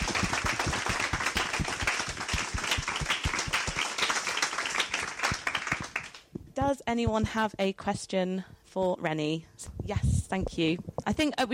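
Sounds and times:
audience clapping: 0:00.0 - 0:06.3
speech: 0:06.6 - 0:11.5.

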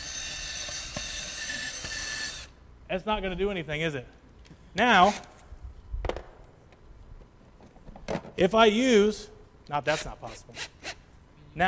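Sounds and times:
power drill spinning hex bit against wooden board: 0:00.0 - 0:02.6, 0:09.9 - 0:11.0
speech: 0:02.9 - 0:05.3, 0:08.4 - 0:10.8.

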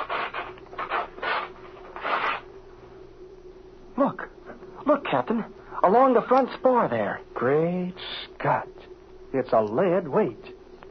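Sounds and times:
fabric covering ripped off an airplane wing: 0:00.0 - 0:02.5
speech: 0:04.9 - 0:08.7, 0:09.3 - 0:10.5.

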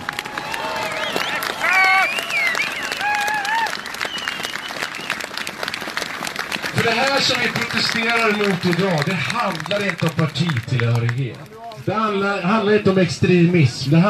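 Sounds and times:
scattered cheers and whoops: 0:00.0 - 0:05.2
large crowd clapping outdoors: 0:00.0 - 0:12.7
speech: 0:06.9 - 0:14.0.

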